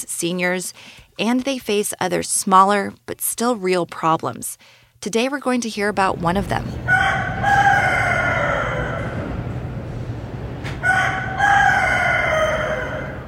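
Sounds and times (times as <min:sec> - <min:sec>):
speech: 0:00.0 - 0:07.6
low hum: 0:00.0 - 0:13.2
rooster crowing: 0:06.8 - 0:09.6, 0:10.8 - 0:13.2.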